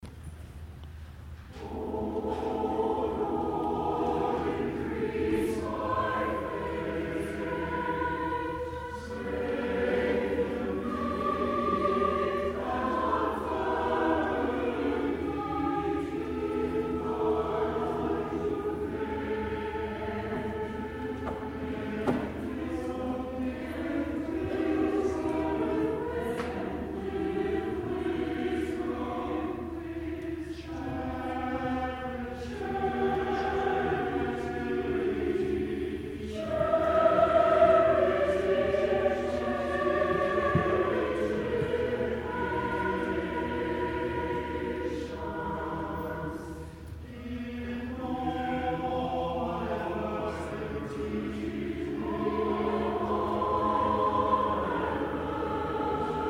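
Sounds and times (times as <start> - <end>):
church choir singing: 1.4 - 56.2.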